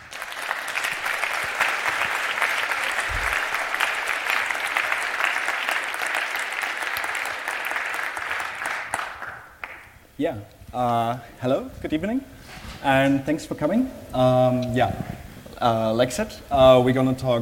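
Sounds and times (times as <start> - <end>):
audience applause: 0.0 - 10.0
speech: 10.2 - 17.4.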